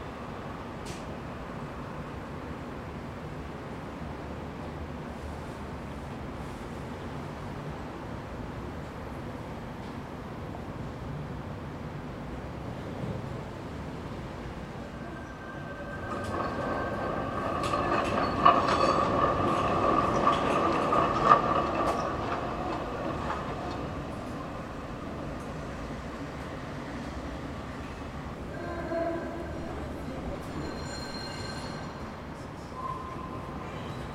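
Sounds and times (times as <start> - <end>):
train or tram passing: 0.0 - 34.1
traffic rumble near the Rijswijkseplein, The Hague: 11.1 - 30.7
train or tram wheel squeal: 14.9 - 23.8, 30.3 - 34.1.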